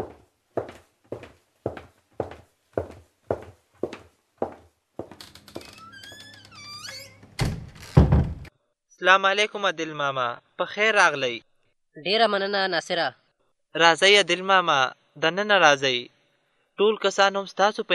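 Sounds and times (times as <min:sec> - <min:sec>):
heavy footsteps: 0:00.0 - 0:05.7
door opening with a squealing creak: 0:05.1 - 0:08.5
speech: 0:09.0 - 0:16.1, 0:16.8 - 0:17.9.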